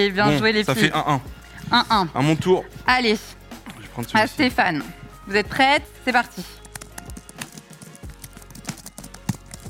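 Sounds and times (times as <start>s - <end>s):
speech: 0.2s - 3.4s, 4.0s - 6.6s
typing on a computer keyboard: 6.4s - 9.6s.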